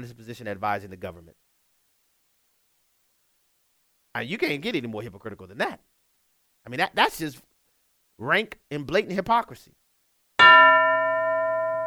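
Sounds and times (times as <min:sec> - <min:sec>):
speech: 0:00.0 - 0:01.5, 0:04.2 - 0:05.9, 0:06.6 - 0:07.5, 0:08.2 - 0:09.8
bell ringing: 0:10.4 - 0:11.8.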